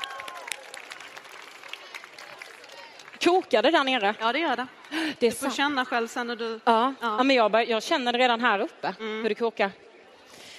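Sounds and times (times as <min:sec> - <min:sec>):
audience applause: 0:00.0 - 0:03.3
speech: 0:03.2 - 0:09.8.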